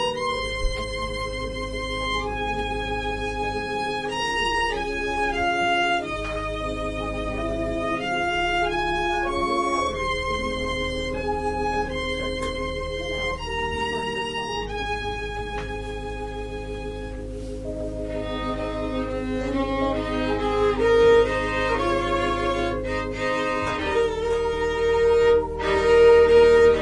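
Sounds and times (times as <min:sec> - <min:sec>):
organ playing a prelude: 0:00.0 - 0:26.8
violin playing a prelude: 0:00.0 - 0:26.8.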